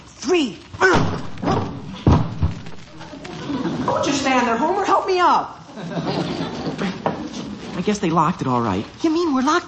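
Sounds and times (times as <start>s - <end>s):
speech: 0.3s - 0.6s, 7.9s - 9.6s
people throwing themselves against a locked door: 0.8s - 2.8s
laughter: 3.3s - 4.3s, 5.7s - 7.1s.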